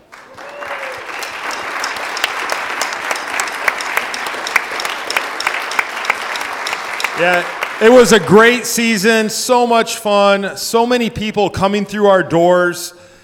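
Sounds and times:
audience applauding soccer players: 0.0 - 9.2
speech: 7.2 - 13.0.

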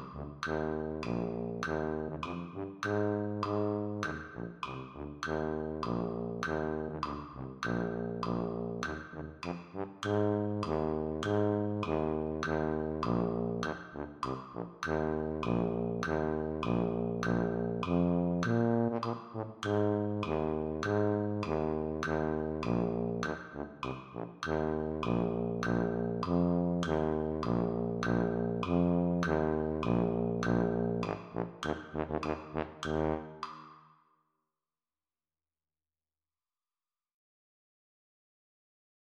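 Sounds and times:
tuba playing: 0.0 - 33.5.

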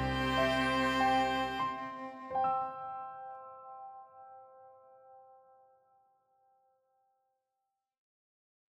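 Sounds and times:
cheerful string music: 0.0 - 2.7.

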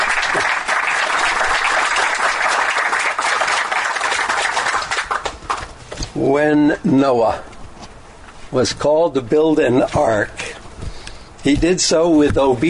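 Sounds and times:
crowd applauding: 0.0 - 5.7
speech: 6.2 - 7.5, 8.5 - 10.4, 11.4 - 12.6.

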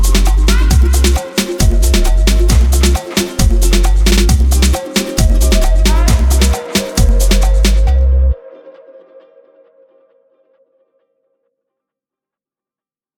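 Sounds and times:
Latin party beat: 0.0 - 8.4.

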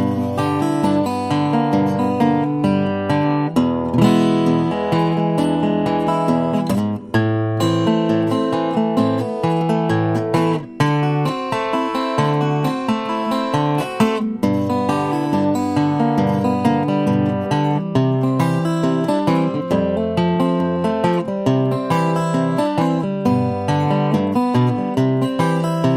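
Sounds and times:
slow guitar playing: 0.0 - 25.9.

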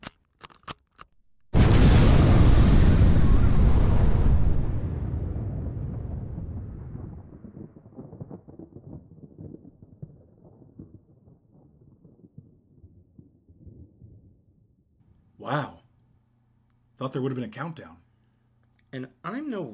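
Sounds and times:
nuclear bombs detonating to destroy a comet: 1.5 - 10.9
speech: 17.1 - 18.0, 18.9 - 19.7.

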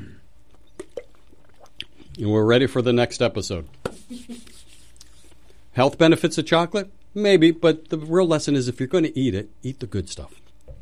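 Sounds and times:
sipping water: 0.0 - 2.3, 3.7 - 5.7, 10.2 - 10.7
speech: 2.2 - 4.5, 5.8 - 10.4.

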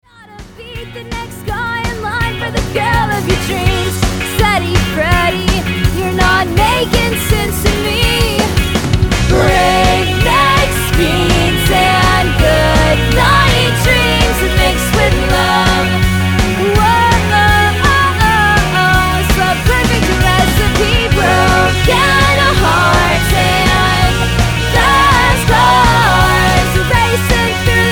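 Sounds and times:
rock music: 0.0 - 27.8.

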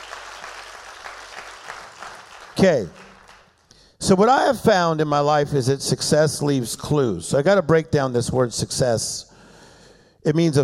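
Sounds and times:
audience clapping hands: 0.0 - 3.7
speech: 2.6 - 3.0, 4.0 - 9.3, 10.2 - 10.6.

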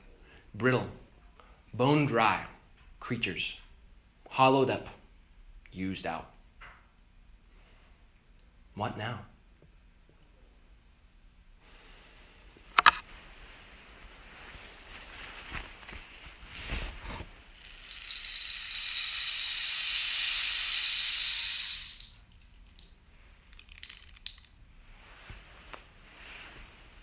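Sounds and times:
speech: 0.6 - 1.0, 1.7 - 3.6, 4.3 - 5.0, 5.7 - 6.3, 8.8 - 9.3
rain stick being upended: 17.6 - 24.6.

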